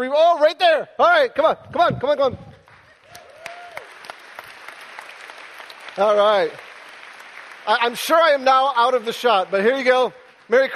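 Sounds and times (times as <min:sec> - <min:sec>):
speech: 0:00.0 - 0:02.5, 0:06.0 - 0:06.7, 0:07.6 - 0:10.7
audience applause: 0:02.6 - 0:10.7
person whooping: 0:02.9 - 0:03.9.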